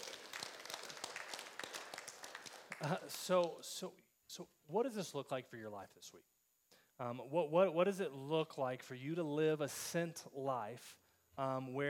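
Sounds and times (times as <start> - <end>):
audience clapping: 0.0 - 3.7
speech: 2.8 - 6.3, 7.0 - 11.8.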